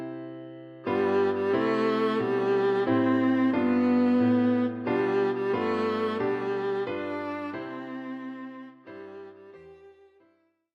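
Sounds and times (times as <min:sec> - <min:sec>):
viola: 0:00.9 - 0:10.2.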